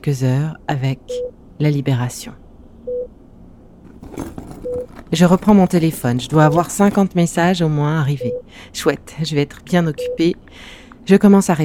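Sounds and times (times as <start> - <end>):
speech: 0.0 - 2.4, 5.1 - 11.6
rustling clattering noise: 3.8 - 7.6
medical machine beeping: 4.6 - 4.9, 8.2 - 8.5.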